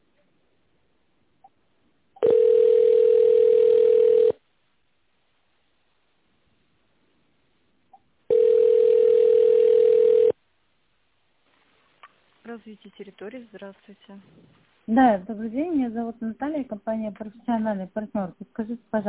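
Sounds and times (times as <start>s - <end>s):
telephone ringback tones: 2.2s - 4.4s, 8.3s - 10.4s
speech: 12.6s - 19.0s.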